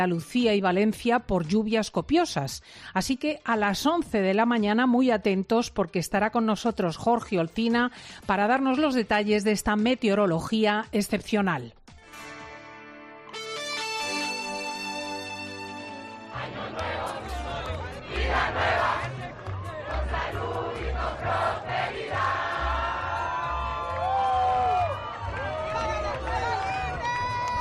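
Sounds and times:
speech: 0:00.0 - 0:11.8
short musical tone: 0:13.3 - 0:16.4
large crowd cheering and celebrating in a square: 0:15.9 - 0:27.6.

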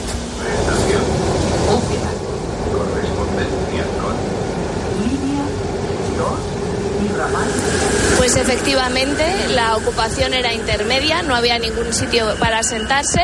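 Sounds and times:
metro train arriving at a station: 0:00.0 - 0:13.2
speech: 0:08.5 - 0:13.2.

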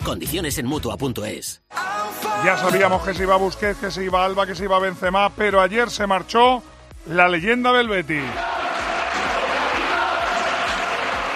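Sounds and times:
speech: 0:00.1 - 0:08.5
stadium crowd chanting at the Villamarín: 0:08.4 - 0:11.3.

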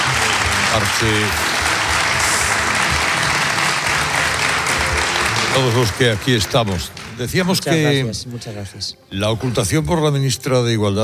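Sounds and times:
audience applause: 0:00.0 - 0:07.8
speech: 0:00.7 - 0:01.5, 0:05.5 - 0:11.0.

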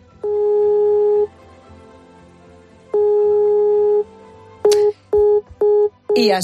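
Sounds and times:
telephone line tone: 0:00.2 - 0:01.3, 0:03.0 - 0:04.1, 0:05.2 - 0:06.3.

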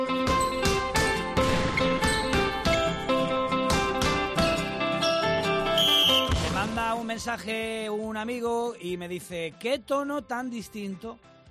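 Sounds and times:
instrumental basketball team theme tune on sports radio: 0:00.0 - 0:07.4
speech: 0:07.2 - 0:11.3.

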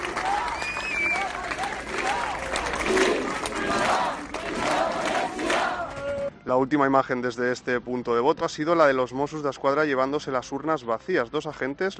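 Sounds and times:
crowd clapping: 0:00.0 - 0:06.3
crowd shouting pro-independence chants: 0:00.0 - 0:06.3
speech: 0:06.5 - 0:11.9.

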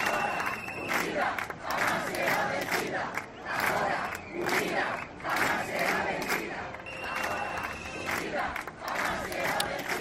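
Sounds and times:
sharp whistles: 0:00.0 - 0:01.1, 0:06.8 - 0:08.2
crowd of residents shouting and chanting at a street protest: 0:00.0 - 0:09.9.

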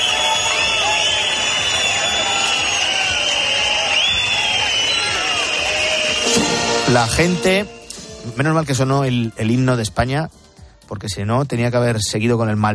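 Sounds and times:
crowd shouting in protest: 0:00.0 - 0:06.9
crowd whistling in protest: 0:00.0 - 0:08.9
speech: 0:06.9 - 0:12.7.

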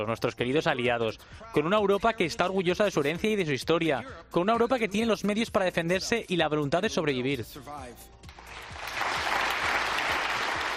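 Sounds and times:
speech: 0:00.0 - 0:08.2
audience ovation applause for Marco Rubio: 0:08.4 - 0:10.7.

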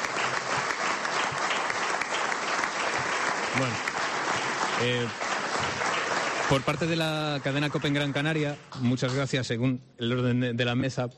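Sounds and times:
audience applause: 0:00.0 - 0:09.4
speech: 0:03.6 - 0:03.9, 0:04.8 - 0:05.3, 0:06.5 - 0:11.1.

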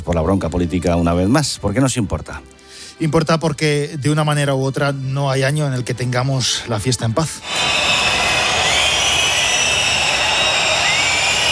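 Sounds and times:
speech: 0:00.1 - 0:08.0
crowd whistling in protest at the arrival of Pedro Sánchez at the parade: 0:07.4 - 0:11.4.

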